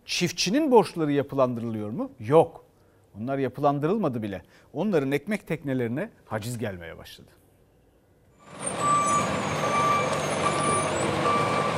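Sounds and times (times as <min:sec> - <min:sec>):
speech: 0:00.1 - 0:07.4
high evenly spaced truck reversing beep: 0:08.4 - 0:11.7
truck engine rumbling while reversing to load seized tractors: 0:08.4 - 0:11.7.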